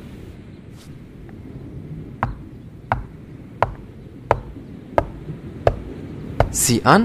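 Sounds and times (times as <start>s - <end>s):
low rumble: 0.0s - 7.0s
knocking on a hollow wall: 2.2s - 6.6s.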